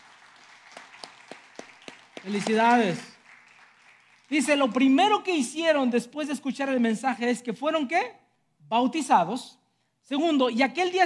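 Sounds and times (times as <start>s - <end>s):
audience applause: 0.0s - 5.0s
speech: 2.2s - 3.1s, 4.3s - 11.0s.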